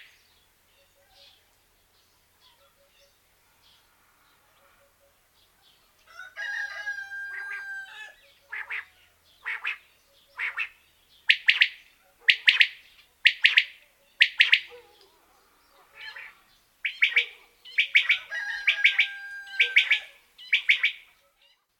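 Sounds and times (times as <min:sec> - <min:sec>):
quail calling: 0:07.1 - 0:21.2.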